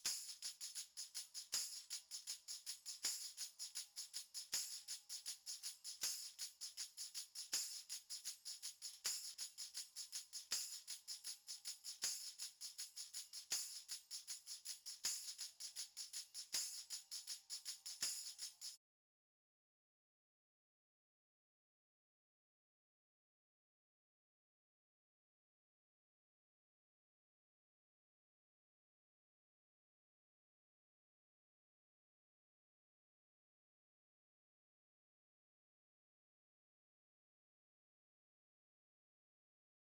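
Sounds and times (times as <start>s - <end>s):
percussion: 0.0s - 18.8s.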